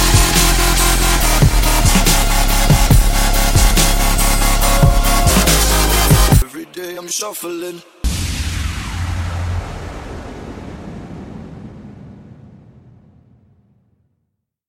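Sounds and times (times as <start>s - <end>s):
dubstep music: 0.0s - 8.2s.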